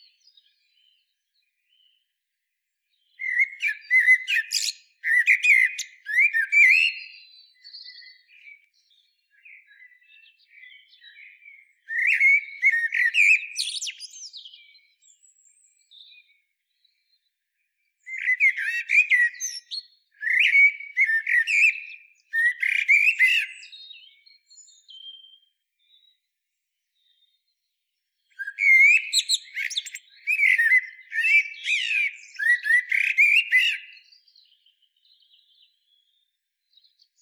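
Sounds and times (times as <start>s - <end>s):
common blackbird calls: 3.1s - 8.6s, 9.4s - 16.3s, 18.1s - 26.1s, 28.3s - 36.2s.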